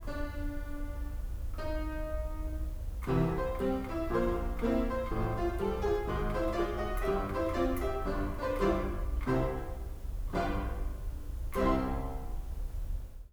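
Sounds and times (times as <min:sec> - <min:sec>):
piano: 0:00.0 - 0:13.3.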